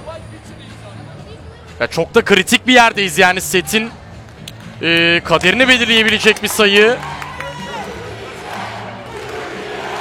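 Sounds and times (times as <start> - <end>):
speech: 1.8 - 4.0, 4.8 - 7.1
arena crowd chanting: 7.6 - 9.9.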